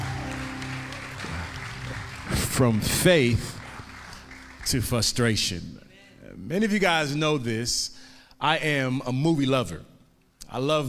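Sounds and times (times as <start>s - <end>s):
low sustained musical tone: 0.0s - 5.4s
audience hand clapping: 0.0s - 5.5s
speech: 2.6s - 3.6s, 4.7s - 9.9s, 10.5s - 10.8s.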